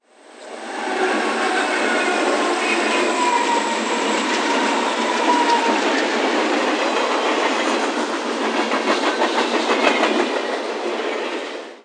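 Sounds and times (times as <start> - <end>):
train passing: 0.0 - 11.8.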